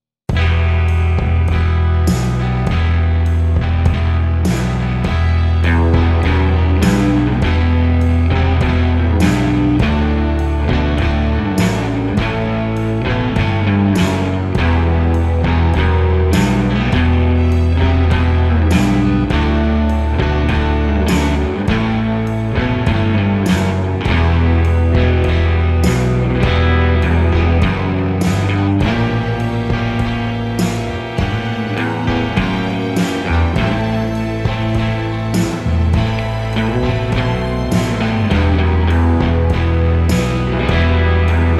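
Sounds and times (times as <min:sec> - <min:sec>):
western music: 0:00.3 - 0:41.5.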